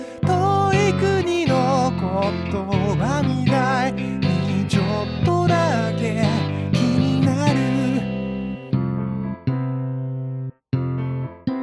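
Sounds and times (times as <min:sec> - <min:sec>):
bass guitar: 0:00.2 - 0:11.4.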